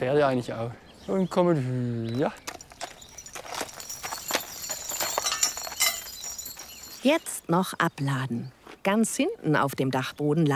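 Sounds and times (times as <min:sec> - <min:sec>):
speech: 0:00.0 - 0:02.6, 0:07.0 - 0:10.5
draft horses' hooves clip-clopping: 0:02.2 - 0:07.4.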